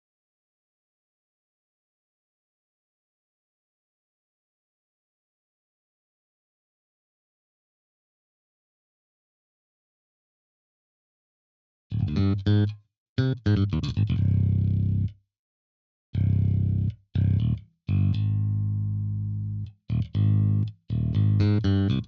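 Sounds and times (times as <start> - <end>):
bass: 11.9 - 15.2, 16.2 - 22.0.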